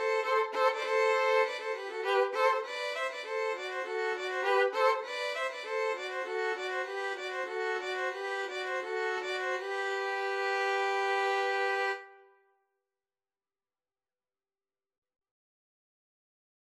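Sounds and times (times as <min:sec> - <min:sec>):
two violins and cello playing pastoral music: 0:00.0 - 0:12.0.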